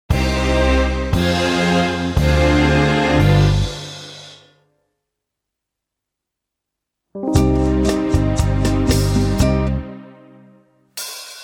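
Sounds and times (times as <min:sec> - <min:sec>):
brass music: 0:00.1 - 0:04.5, 0:07.2 - 0:10.8.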